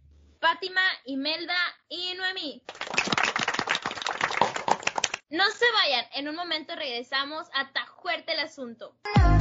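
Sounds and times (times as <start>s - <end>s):
speech: 0.5s - 3.0s, 5.3s - 9.3s
audience applause: 2.7s - 5.2s.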